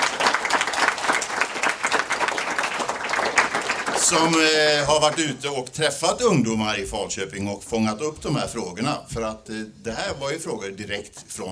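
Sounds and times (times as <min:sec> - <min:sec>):
audience applause: 0:00.0 - 0:05.4
speech: 0:04.1 - 0:11.5.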